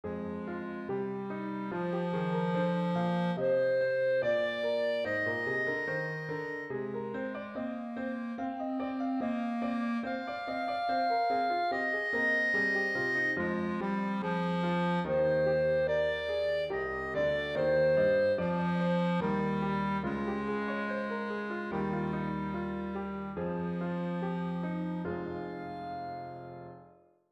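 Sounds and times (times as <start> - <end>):
clarinet: 0.0 - 27.0.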